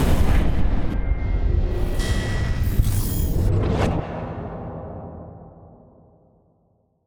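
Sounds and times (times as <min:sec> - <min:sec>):
final boss explosion: 0:00.0 - 0:04.2.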